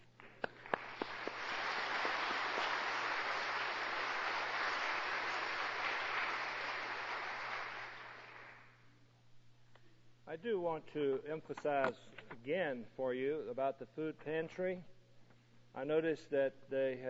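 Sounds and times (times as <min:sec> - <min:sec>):
audience clapping: 0:00.0 - 0:08.8
speech: 0:10.3 - 0:14.9, 0:15.8 - 0:17.0.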